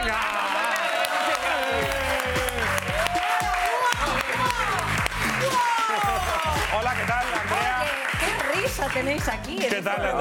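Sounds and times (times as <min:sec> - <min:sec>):
whoops and cheering voices: 0:00.0 - 0:06.6
large audience applause: 0:00.0 - 0:09.9
speech: 0:09.0 - 0:10.1.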